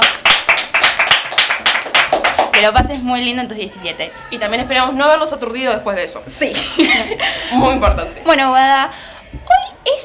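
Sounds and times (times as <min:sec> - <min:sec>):
applause, hand clapping: 0:00.0 - 0:03.1
speech: 0:02.6 - 0:09.5
laughter: 0:06.5 - 0:07.8.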